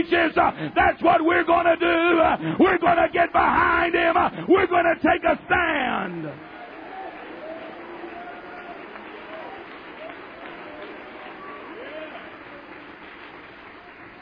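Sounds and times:
speech: 0.0s - 6.5s
audience clapping: 6.0s - 14.2s.

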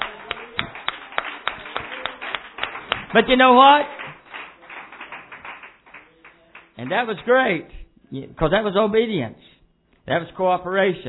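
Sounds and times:
audience clapping hands: 0.0s - 7.6s
speech: 3.1s - 4.0s, 6.8s - 9.5s, 10.1s - 11.0s.

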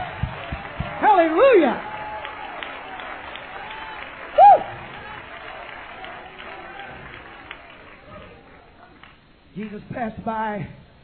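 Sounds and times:
audience clapping: 0.0s - 9.8s
speech: 1.2s - 1.9s, 9.6s - 10.8s.

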